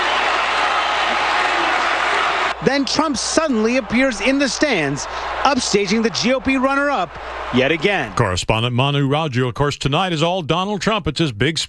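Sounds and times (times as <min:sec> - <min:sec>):
crowd angrily interrupting a speech at a party nominating convention: 0:00.0 - 0:08.4
speech: 0:02.6 - 0:11.6.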